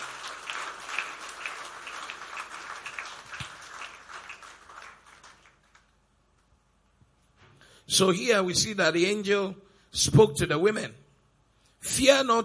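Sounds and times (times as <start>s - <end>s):
audience applause: 0.0s - 5.9s
speech: 7.9s - 11.0s, 12.0s - 12.4s.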